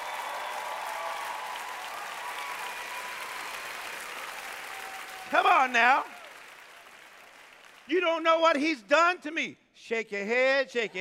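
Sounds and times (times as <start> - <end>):
audience clapping: 0.0 - 8.6
speech: 5.3 - 6.2, 7.9 - 10.9.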